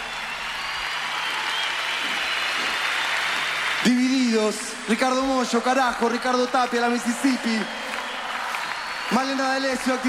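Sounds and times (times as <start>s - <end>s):
crowd applauding everyone who took part: 0.0s - 10.0s
speech: 3.8s - 7.8s, 9.1s - 10.0s.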